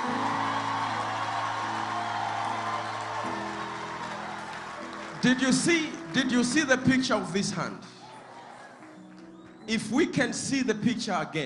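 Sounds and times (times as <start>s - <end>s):
audience clapping and cheering: 0.0s - 10.1s
speech: 5.2s - 8.0s, 9.7s - 11.4s.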